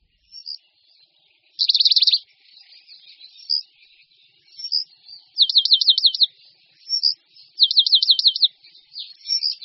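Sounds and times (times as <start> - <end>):
Eurasian penduline tit singing buzzy trills and slurred whistles: 1.6 - 3.7, 4.4 - 9.6.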